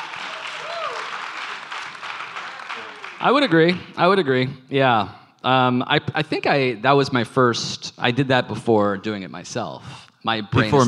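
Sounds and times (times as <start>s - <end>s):
audience clapping: 0.0s - 4.1s
speech: 3.2s - 10.8s.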